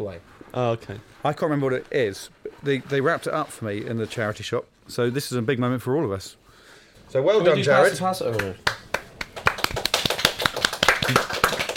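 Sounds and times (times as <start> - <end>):
speech: 0.0 - 6.4, 7.1 - 8.7
small group applauding: 8.3 - 11.7.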